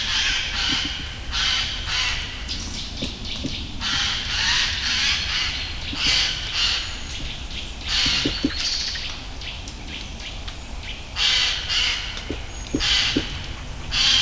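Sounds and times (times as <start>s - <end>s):
jay calling: 0.0s - 9.4s, 11.2s - 14.1s
birds singing in the morning: 0.0s - 14.1s
woodpecker: 0.0s - 14.1s.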